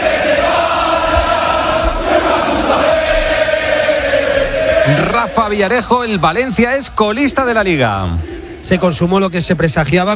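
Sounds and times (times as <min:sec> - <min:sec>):
stadium crowd shouting in protest: 0:00.0 - 0:06.4
speech: 0:04.9 - 0:10.1.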